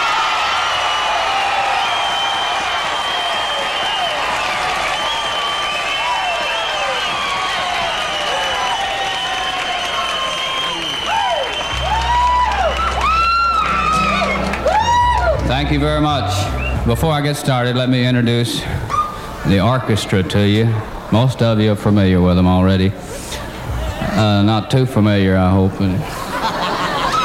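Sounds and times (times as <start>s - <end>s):
audience cheering and applauding a country singer's entrance: 0.0s - 17.3s
shrill whistles: 0.5s - 15.2s, 16.5s - 16.8s, 18.9s - 19.2s
speech: 15.6s - 18.8s, 19.4s - 23.2s, 24.2s - 26.2s
laughter: 26.0s - 27.2s.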